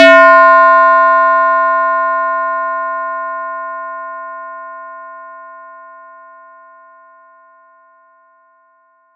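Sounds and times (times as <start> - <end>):
ringing effect: 0.0 - 3.6.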